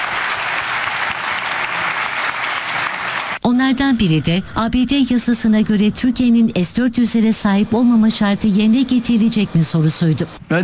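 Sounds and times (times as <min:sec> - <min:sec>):
long applause in a press hall: 0:00.0 - 0:03.4
speech: 0:03.5 - 0:10.6.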